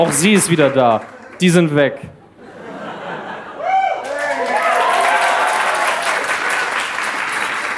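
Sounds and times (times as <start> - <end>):
audience applause: 0.0 - 1.4, 3.6 - 7.7
speech: 0.0 - 2.2
laughter: 2.2 - 3.8.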